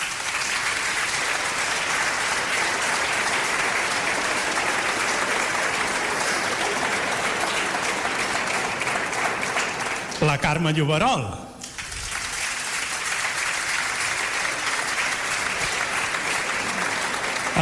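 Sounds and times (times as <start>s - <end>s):
audience applause: 0.0s - 10.8s, 11.6s - 17.6s
speech: 10.3s - 11.5s.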